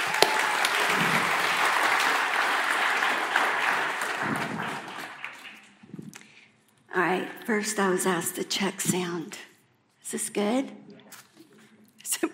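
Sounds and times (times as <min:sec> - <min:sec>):
audience applause welcoming a speaker: 0:00.0 - 0:05.8
speech: 0:07.5 - 0:09.5, 0:10.1 - 0:10.8.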